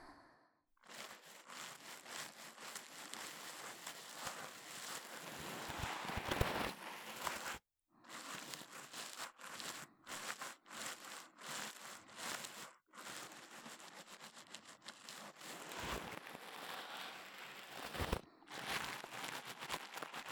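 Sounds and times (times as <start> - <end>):
brush strokes: 0.8 - 20.3.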